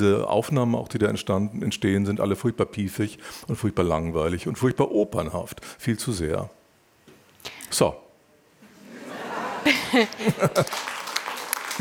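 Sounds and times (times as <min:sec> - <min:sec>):
speech: 0:00.0 - 0:06.6, 0:07.7 - 0:08.0, 0:09.9 - 0:10.9
laughter: 0:08.7 - 0:11.2
audience applause: 0:09.6 - 0:11.7.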